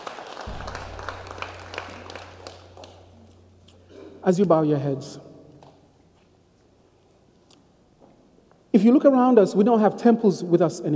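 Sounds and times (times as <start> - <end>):
audience applause: 0.0 - 3.2
speech: 4.2 - 5.3, 8.8 - 10.9.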